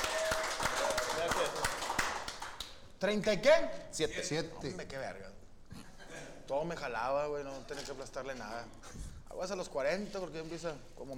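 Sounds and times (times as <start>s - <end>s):
steady evenly paced hand clapping: 0.0s - 2.8s
speech: 3.0s - 5.4s, 6.5s - 11.1s.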